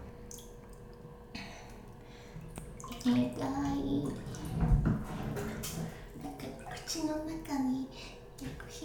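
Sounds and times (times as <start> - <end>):
ambient sound: 1.9 - 7.9.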